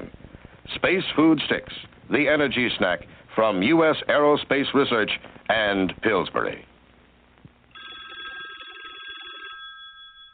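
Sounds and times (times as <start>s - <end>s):
speech: 0.8s - 6.7s
telephone ringing with electronic trill: 7.7s - 10.3s.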